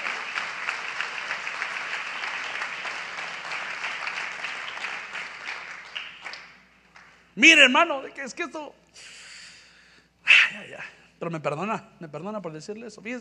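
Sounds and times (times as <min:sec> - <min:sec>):
audience applause: 0:00.0 - 0:07.2
speech: 0:07.4 - 0:09.1, 0:10.8 - 0:13.1.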